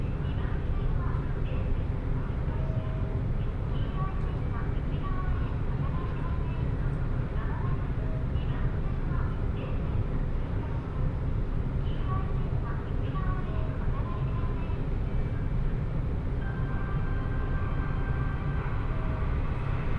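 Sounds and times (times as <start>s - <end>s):
Osaka Monorail running rumble: 0.0s - 19.9s
voices: 0.0s - 19.9s.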